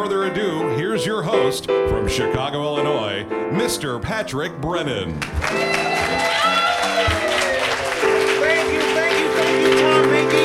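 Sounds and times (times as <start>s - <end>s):
speech: 0.0s - 7.2s
music: 0.0s - 10.4s
audience applause: 5.2s - 10.4s.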